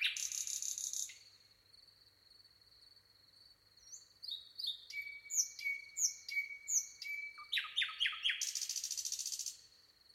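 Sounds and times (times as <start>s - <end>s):
common nightingale singing: 0.0s - 1.4s, 3.8s - 9.7s.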